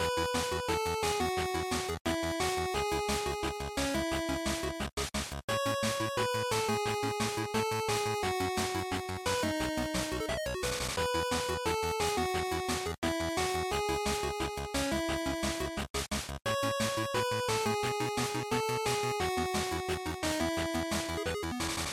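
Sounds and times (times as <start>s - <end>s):
fighting game ending music loop: 0.0s - 21.9s.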